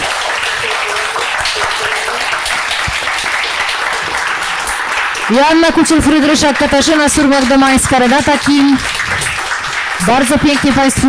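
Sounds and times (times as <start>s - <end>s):
audience applause: 0.0s - 11.0s
speech: 5.3s - 9.0s, 10.0s - 11.0s.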